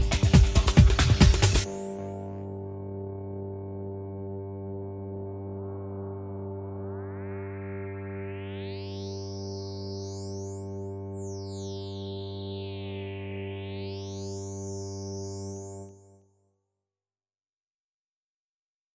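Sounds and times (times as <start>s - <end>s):
beat: 0.0s - 2.0s.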